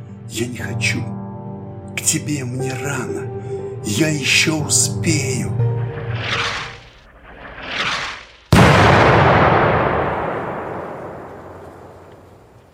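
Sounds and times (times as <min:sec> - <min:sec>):
speech: 0:00.3 - 0:01.2, 0:02.0 - 0:06.5
explosion: 0:06.0 - 0:12.6.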